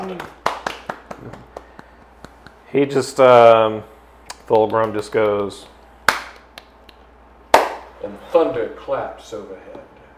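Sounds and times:
hands clapping in applause: 0:00.0 - 0:02.6, 0:04.6 - 0:07.9
speech: 0:00.1 - 0:00.4, 0:02.7 - 0:03.9, 0:04.5 - 0:05.7, 0:08.0 - 0:09.9.

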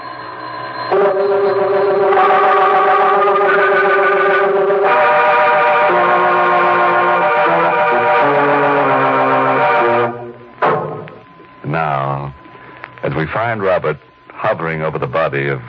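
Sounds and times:
bell ringing: 0:00.0 - 0:11.7
speech: 0:13.4 - 0:15.6.

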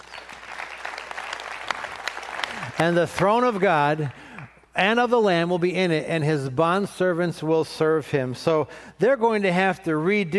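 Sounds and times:
audience applauding: 0:00.0 - 0:04.6
speech: 0:02.8 - 0:04.2, 0:04.8 - 0:10.3.

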